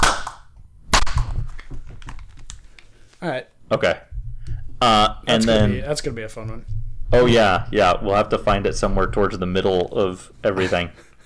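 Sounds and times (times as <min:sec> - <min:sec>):
hand clap: 0:00.0 - 0:02.2
speech: 0:03.2 - 0:04.1, 0:04.8 - 0:11.1.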